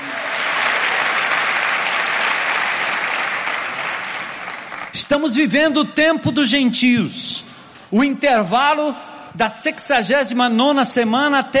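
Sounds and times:
audience applauding: 0:00.0 - 0:05.0
speech: 0:05.1 - 0:11.5.

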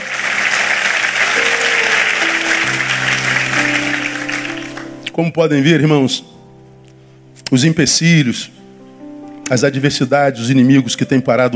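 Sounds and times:
audience applause: 0:00.0 - 0:05.0
speech: 0:05.2 - 0:06.4, 0:07.5 - 0:08.6, 0:09.5 - 0:11.5.

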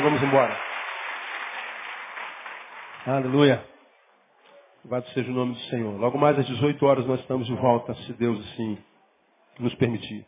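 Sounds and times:
audience applauding: 0:00.0 - 0:03.6
speech: 0:00.2 - 0:00.7, 0:03.0 - 0:03.7, 0:04.8 - 0:08.9, 0:09.6 - 0:10.2.

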